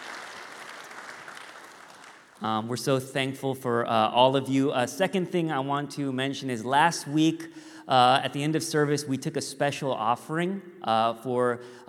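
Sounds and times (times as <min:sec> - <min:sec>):
audience applause: 0:00.0 - 0:02.4
speech: 0:02.4 - 0:11.8.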